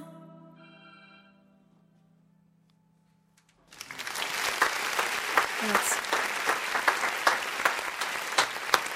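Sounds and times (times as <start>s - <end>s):
studio audience applause: 3.7s - 8.9s.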